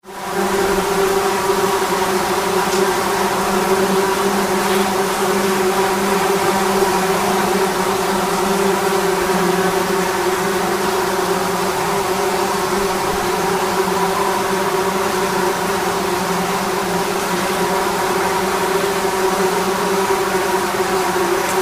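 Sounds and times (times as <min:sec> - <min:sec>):
bees nest under a railway bridge in Suffolk UK: 0:00.1 - 0:21.5.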